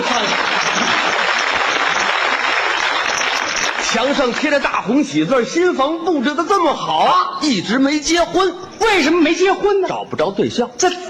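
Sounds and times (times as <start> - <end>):
audience applause: 0.0 - 4.5
speech: 3.9 - 11.0.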